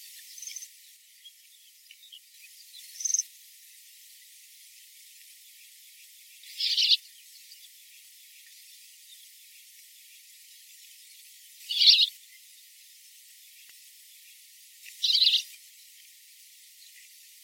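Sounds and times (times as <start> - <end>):
Crimson bunting chirping calls: 6.5 - 7.0, 11.7 - 12.1, 15.0 - 15.5.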